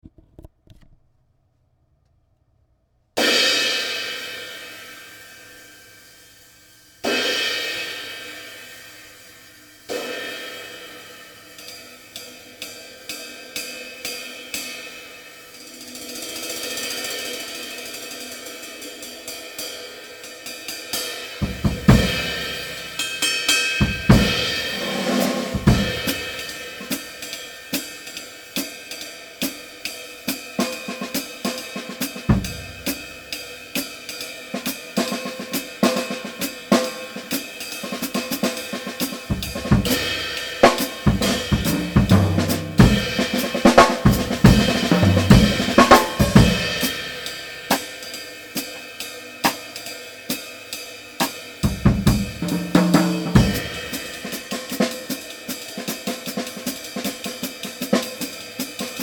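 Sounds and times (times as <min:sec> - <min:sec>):
21-inch Zildjian prototype cymbal: 0:03.2 - 0:59.0.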